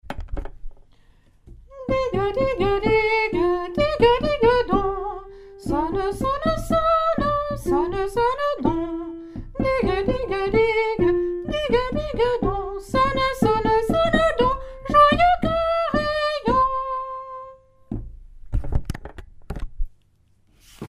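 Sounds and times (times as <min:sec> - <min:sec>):
soprano singing: 0:01.7 - 0:17.6.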